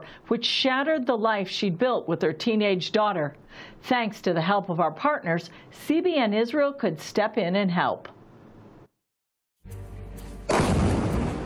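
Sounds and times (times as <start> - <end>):
speech: 0.1 - 8.2
ballistic missile impact explosion recorded on a cell phone: 10.5 - 11.4.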